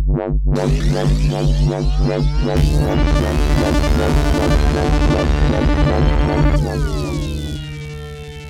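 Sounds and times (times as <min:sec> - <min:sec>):
dubstep sounds: 0:00.2 - 0:08.4.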